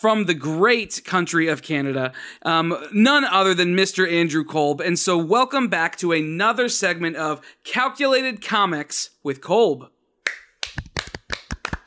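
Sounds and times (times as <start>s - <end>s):
speech: 0.0s - 10.0s
sharp hand claps: 10.2s - 11.8s.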